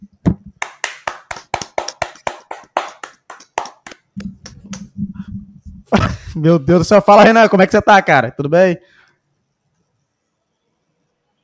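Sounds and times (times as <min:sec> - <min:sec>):
round of applause: 0:00.6 - 0:04.1
speech: 0:05.9 - 0:09.0.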